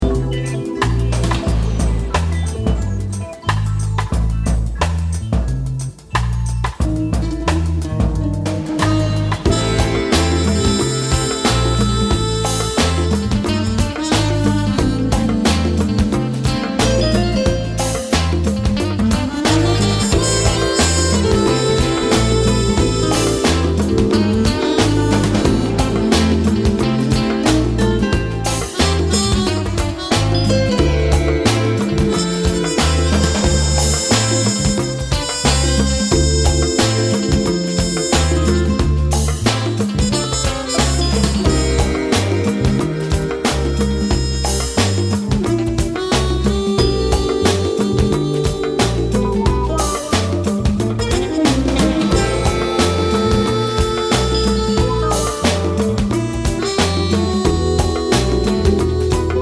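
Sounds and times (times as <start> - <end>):
polka music: 0.0 - 59.4.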